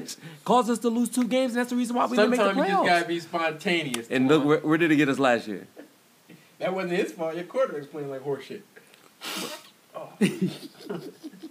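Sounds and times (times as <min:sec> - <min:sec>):
speech: 0:00.0 - 0:05.8, 0:06.6 - 0:11.2
nose blowing: 0:09.2 - 0:09.8
laughter: 0:10.2 - 0:11.4.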